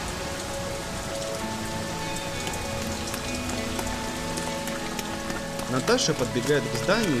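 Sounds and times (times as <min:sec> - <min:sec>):
rain: 0:00.0 - 0:07.1
speech: 0:05.7 - 0:07.1.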